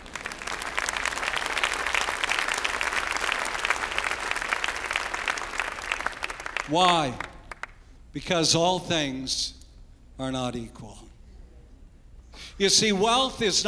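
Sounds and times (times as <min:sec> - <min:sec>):
audience applause: 0:00.0 - 0:07.8
speech: 0:06.7 - 0:07.3, 0:08.2 - 0:09.6, 0:10.2 - 0:11.0, 0:12.6 - 0:13.6.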